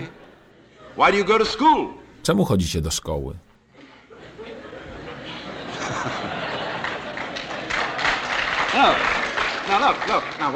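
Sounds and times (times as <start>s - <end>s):
speech: 1.0s - 3.5s, 8.8s - 9.1s, 9.7s - 10.5s
laughter: 4.2s - 7.7s
audience applause: 6.8s - 10.5s.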